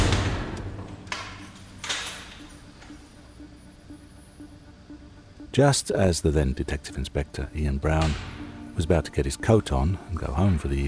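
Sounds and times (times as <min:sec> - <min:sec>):
heavy door slamming shut with metallic knocks: 0:00.0 - 0:00.9
speech: 0:05.6 - 0:10.8.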